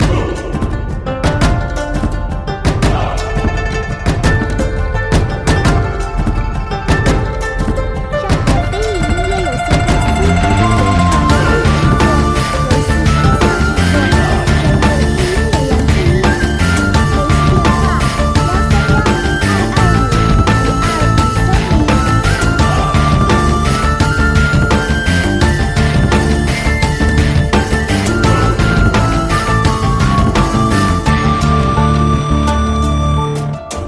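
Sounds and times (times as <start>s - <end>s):
Chinese-style intense battlefield rock music: 0.0s - 33.8s.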